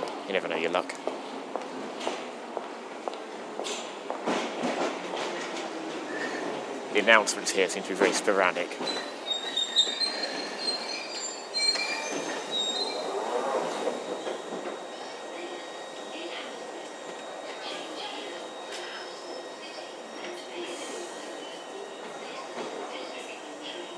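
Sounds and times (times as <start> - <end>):
London Underground train rumbling along the rails: 0.0 - 23.9
speech: 0.3 - 1.3, 7.0 - 9.1
wheel squeals: 6.1 - 6.6, 8.8 - 15.2.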